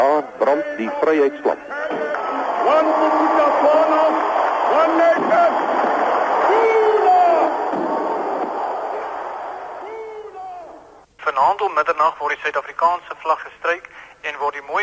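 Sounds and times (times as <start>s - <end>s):
speech: 0.0s - 2.0s, 2.6s - 5.7s, 11.5s - 14.8s
cheering of about 40,000 people: 1.6s - 10.8s.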